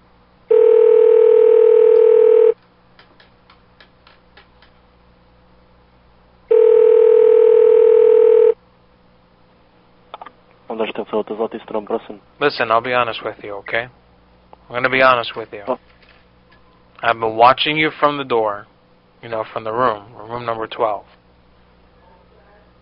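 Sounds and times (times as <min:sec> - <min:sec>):
telephone dial tone: 0:00.5 - 0:02.6, 0:06.5 - 0:08.6
faint telephone dialing clicks: 0:01.9 - 0:02.2
speech: 0:11.1 - 0:14.0, 0:14.7 - 0:15.9, 0:17.0 - 0:21.2.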